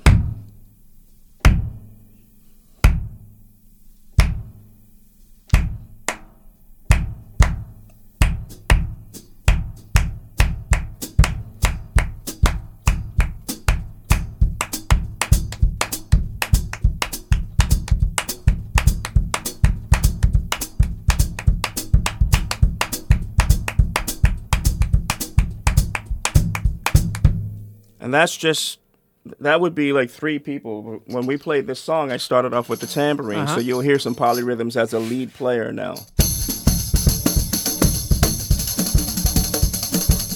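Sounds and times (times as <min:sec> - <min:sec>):
syncopated hand clapping rhythm variations: 0:04.2 - 0:04.5, 0:05.5 - 0:27.4, 0:36.2 - 0:40.3
speech: 0:28.1 - 0:28.8, 0:29.4 - 0:36.2.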